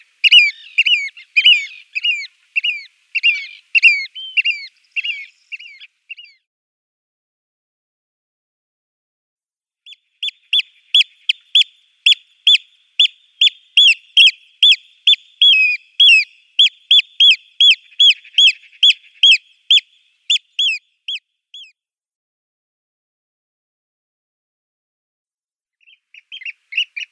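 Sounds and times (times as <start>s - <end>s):
Eurasian oystercatcher piping calls: 0.0s - 6.4s, 9.9s - 21.7s, 25.8s - 27.1s.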